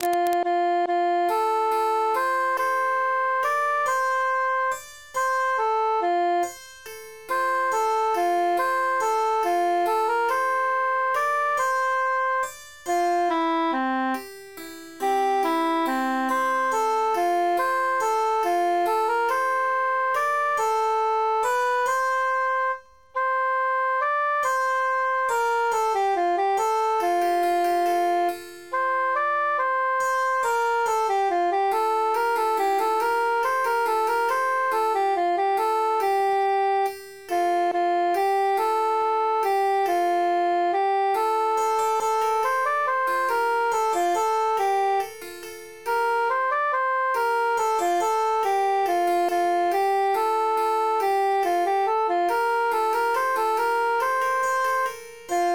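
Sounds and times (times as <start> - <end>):
emphasized cantus melody: 0.0 - 55.5.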